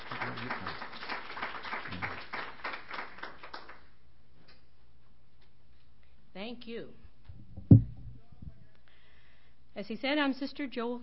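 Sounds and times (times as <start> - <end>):
audience applause: 0.0 - 3.8
speech: 6.7 - 7.1, 9.8 - 11.0.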